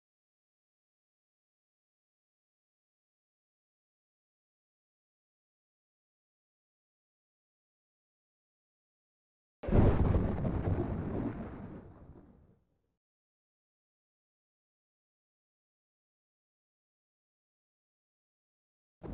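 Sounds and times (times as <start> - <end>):
thunder in a storm: 9.6 - 12.5.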